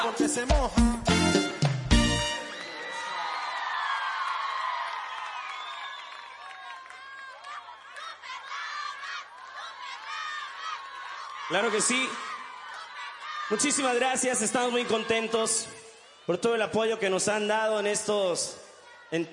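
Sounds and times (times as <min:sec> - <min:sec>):
speech: 0:00.0 - 0:01.5, 0:11.5 - 0:12.3, 0:13.5 - 0:19.3
audience clapping hands: 0:01.6 - 0:15.4.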